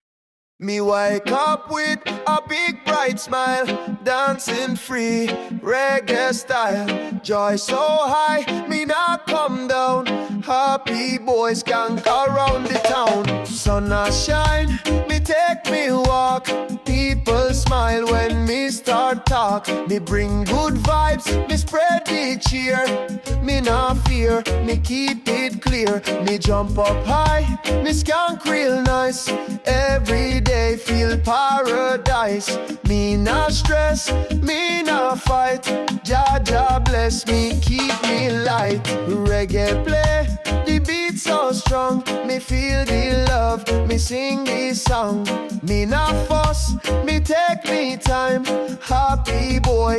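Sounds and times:
happy ska skank music: 0:00.6 - 0:49.9.

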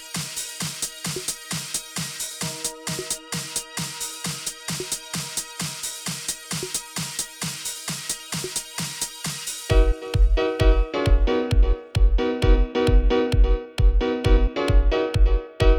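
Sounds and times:
aerobic dance music at 132 BPM: 0:00.0 - 0:15.7.

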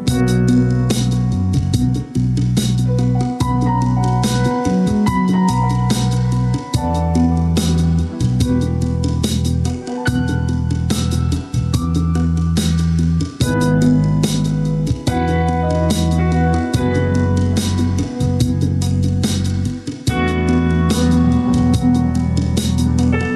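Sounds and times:
funk and chill music: 0:00.1 - 0:23.3.

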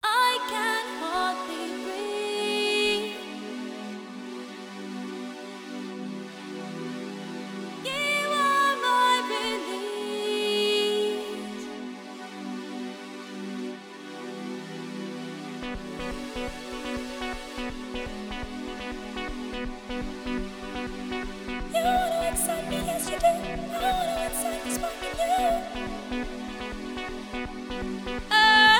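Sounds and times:
chill vocal music at 432 Hz: 0:00.0 - 0:28.7.

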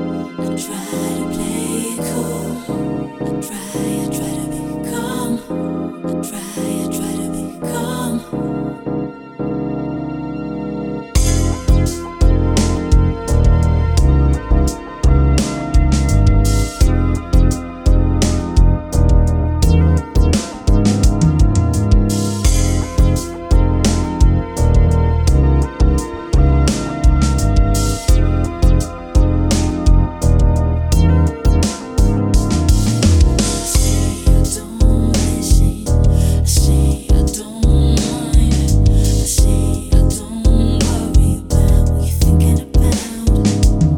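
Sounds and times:
slow funk music: 0:00.1 - 0:43.9.

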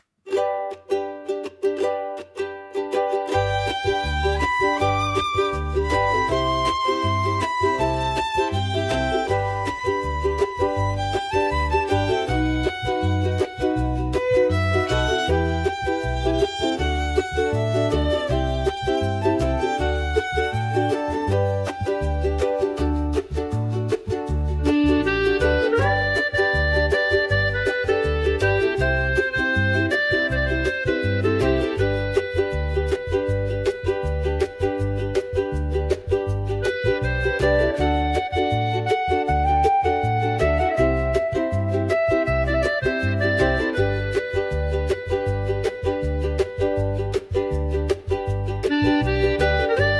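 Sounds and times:
Hawaiian music: 0:00.3 - 0:49.9.

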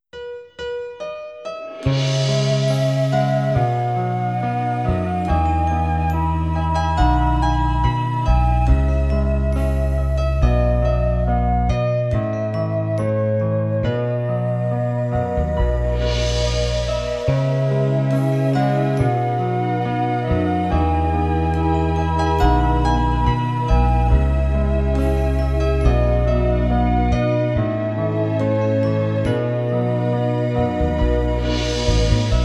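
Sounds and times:
relaxing dance music at 432 Hz: 0:01.5 - 0:32.4.

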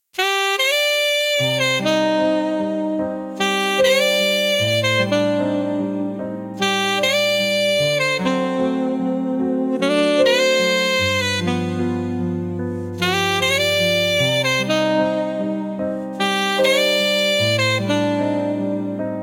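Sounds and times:
saxophone: 0:00.1 - 0:19.2.

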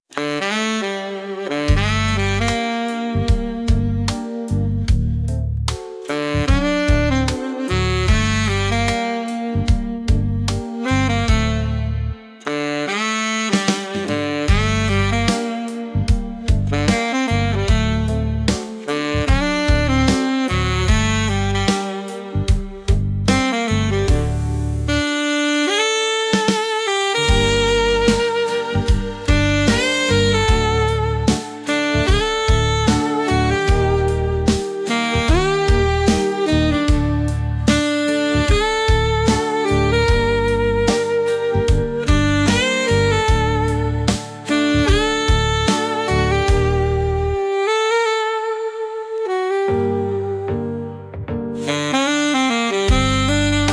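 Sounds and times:
saxophone music: 0:00.0 - 0:53.7.

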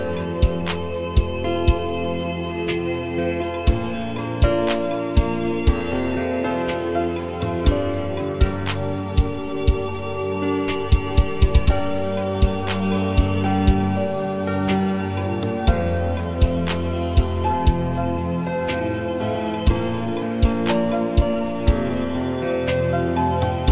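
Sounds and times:
relaxing dance music tuned to 432 Hz: 0:00.0 - 0:23.7.

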